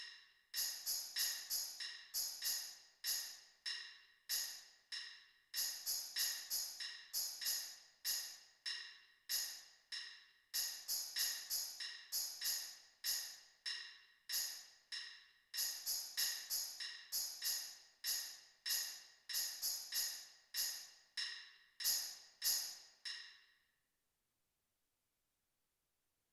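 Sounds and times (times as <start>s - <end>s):
tambourine: 0.0s - 23.6s.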